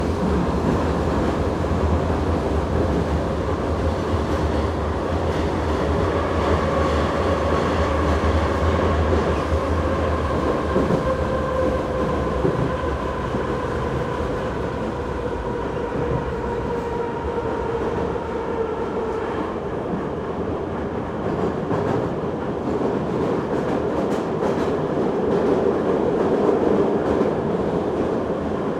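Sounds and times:
subway train interior ride from outdoors into tunnel: 0:00.0 - 0:28.7.

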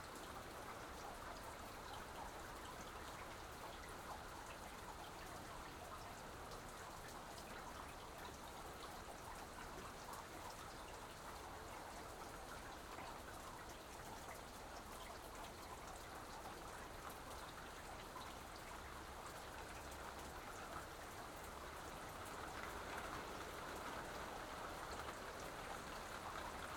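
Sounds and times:
soft rain on an exterior porch: 0:00.0 - 0:26.7.

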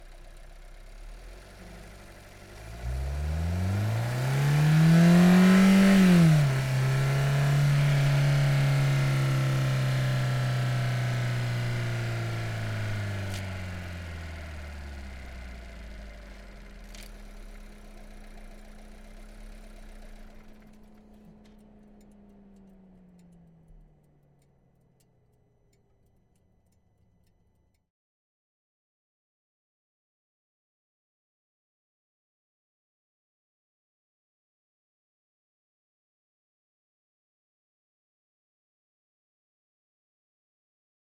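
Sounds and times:
VW Golf engine driving fast onboard: 0:00.0 - 0:24.1.

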